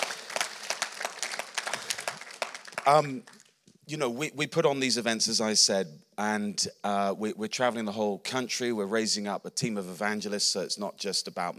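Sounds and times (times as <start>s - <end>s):
round of applause from a crowd: 0.0s - 3.6s
speech: 2.9s - 11.5s.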